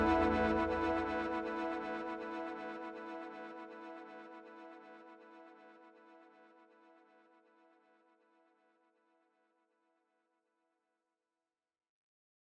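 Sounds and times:
sweep pad: 0.0 - 3.0.

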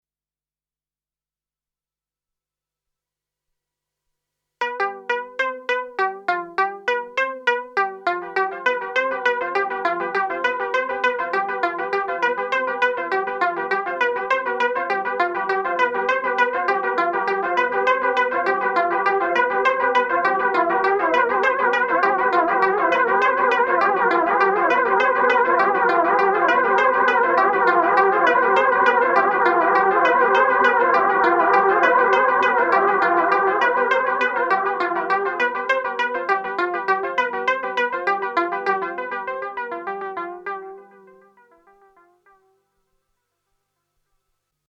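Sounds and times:
synth through Strymon TimeLine pattern repeat delay: 4.6 - 42.4.

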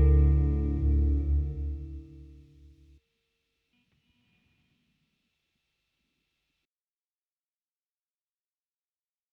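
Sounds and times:
EQD Afterneath Reverberator reverb effect: 0.0 - 2.6.

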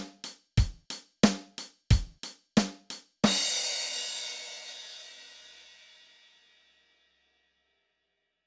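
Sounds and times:
raw drums: 0.0 - 5.1.

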